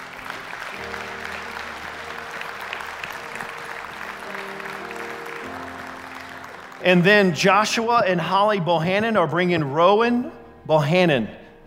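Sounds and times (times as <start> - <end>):
church congregation clapping for a baby dedication: 0.0 - 8.7
speech: 6.8 - 11.4.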